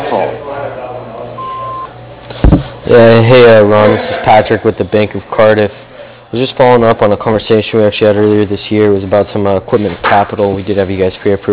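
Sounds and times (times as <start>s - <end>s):
faint low hum: 0.0s - 11.5s
speech: 0.1s - 0.8s, 2.9s - 11.5s
answering machine beep over a phone line: 1.4s - 2.0s.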